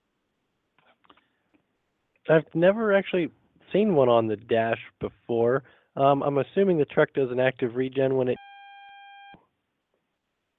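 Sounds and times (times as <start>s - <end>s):
speech: 2.3s - 8.4s
electronic beep on a phone call line: 8.3s - 9.4s.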